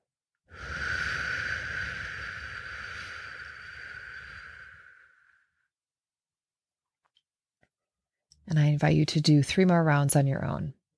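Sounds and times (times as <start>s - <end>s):
whooshing exhale through pursed lips: 0.5s - 5.7s
speech: 8.5s - 10.8s.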